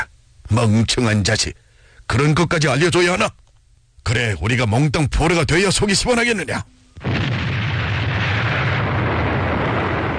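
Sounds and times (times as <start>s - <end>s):
speech: 0.5s - 3.4s, 4.0s - 6.8s
bridge collapsing with thunderous explosion: 7.0s - 10.1s.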